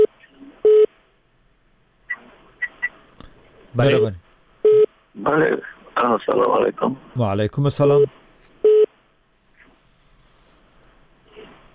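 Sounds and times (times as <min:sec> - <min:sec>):
electronic telephone tone as a caller's line connects: 0:00.0 - 0:00.9
speech: 0:03.8 - 0:04.2, 0:05.2 - 0:08.2.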